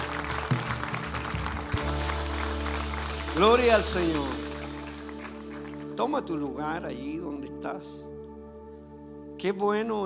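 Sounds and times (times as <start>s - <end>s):
audience applause: 0.0s - 6.4s
speech: 3.4s - 4.4s, 6.0s - 8.1s, 9.4s - 10.0s.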